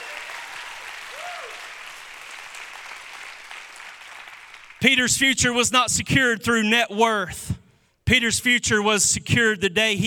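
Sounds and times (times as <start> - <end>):
audience hand clapping: 0.0 - 4.8
speech: 4.8 - 10.0.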